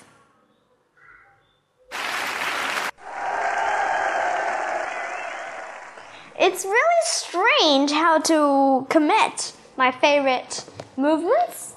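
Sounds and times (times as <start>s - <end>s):
audience applause: 1.9s - 6.4s
speech: 6.5s - 11.6s.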